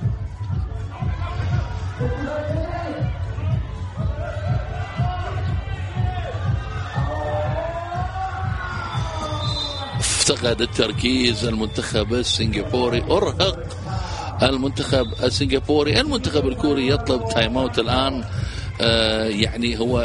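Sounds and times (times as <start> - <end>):
crowd cheering at a Korea versus Singapore sports match: 0.0 - 20.0
speech: 10.3 - 13.8, 14.4 - 20.0.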